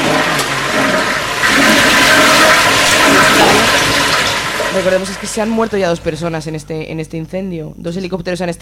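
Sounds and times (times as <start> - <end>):
toilet flushing: 0.0 - 6.5
speech: 4.8 - 8.5.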